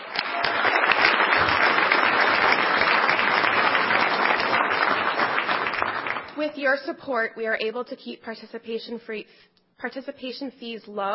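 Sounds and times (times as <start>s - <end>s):
audience applause: 0.0s - 6.3s
speech: 6.4s - 11.1s.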